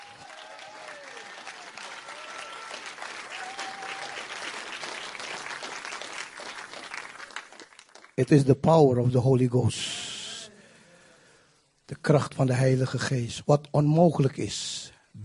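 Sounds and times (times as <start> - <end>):
audience applause: 0.0 - 8.2
speech: 8.2 - 10.0, 12.1 - 15.2.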